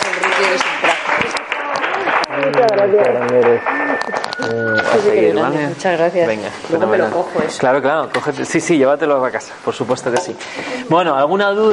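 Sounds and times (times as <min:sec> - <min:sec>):
audience applause: 0:00.0 - 0:04.4
speech: 0:02.8 - 0:11.7.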